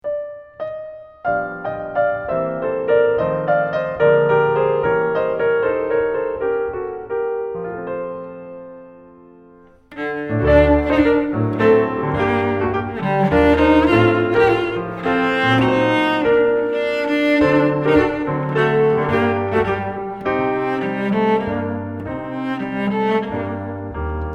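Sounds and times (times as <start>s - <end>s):
cello: 0.7s - 8.4s, 9.6s - 24.3s.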